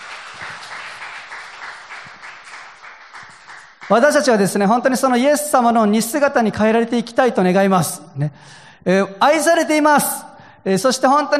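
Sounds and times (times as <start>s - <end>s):
audience applause: 0.0s - 4.0s
speech: 3.9s - 11.3s.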